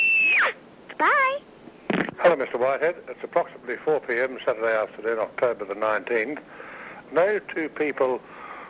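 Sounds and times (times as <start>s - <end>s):
eight-year-old child screaming: 0.1s - 1.4s
speech: 2.2s - 8.4s
harsh breathy noise: 6.5s - 7.1s, 8.2s - 8.6s.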